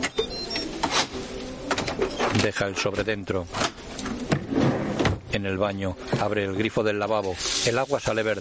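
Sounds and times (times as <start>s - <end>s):
drawer sliding open: 0.1s - 5.2s
speech: 2.3s - 3.8s, 5.4s - 8.3s.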